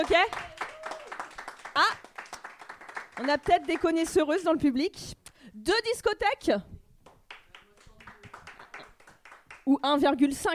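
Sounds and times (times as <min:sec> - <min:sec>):
speech: 0:00.0 - 0:00.6, 0:03.2 - 0:06.7, 0:09.7 - 0:10.5
scattered live show audience claps: 0:00.0 - 0:04.3, 0:07.0 - 0:09.8.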